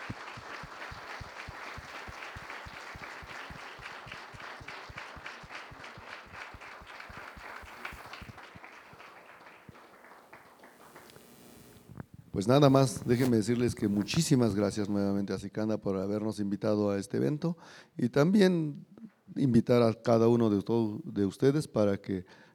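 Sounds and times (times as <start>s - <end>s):
audience applause: 0.0s - 11.8s
speech: 12.4s - 22.5s.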